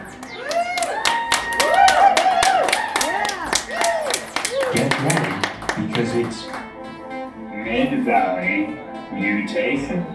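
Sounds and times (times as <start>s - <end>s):
audience clapping: 0.0s - 6.8s
speech: 4.7s - 5.2s, 5.9s - 6.6s, 7.7s - 10.1s.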